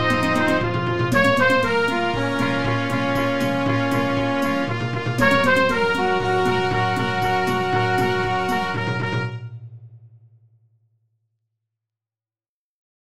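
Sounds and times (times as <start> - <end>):
disco band playing: 0.0 - 9.4.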